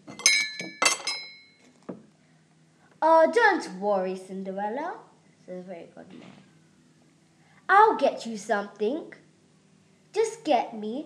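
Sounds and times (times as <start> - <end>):
dishes clinking: 0.0 - 2.0
speech: 3.0 - 6.5, 7.7 - 9.2, 10.1 - 11.0.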